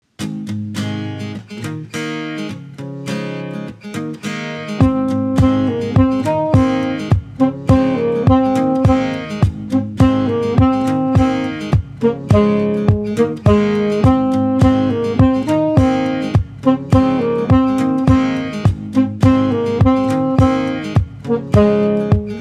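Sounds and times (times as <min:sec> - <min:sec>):
saxophone: 0:04.7 - 0:22.4.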